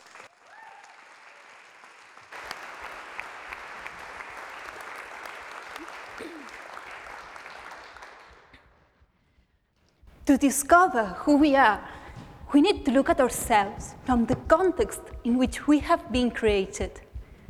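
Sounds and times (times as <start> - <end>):
audience applause: 0.0 - 8.7
speech: 10.3 - 17.0.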